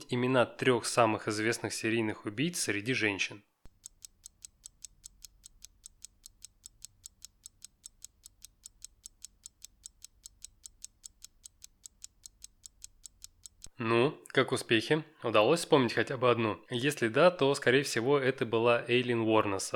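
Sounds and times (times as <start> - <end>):
speech: 0.1 - 3.5, 13.8 - 19.7
ticking countdown timer: 3.7 - 13.7.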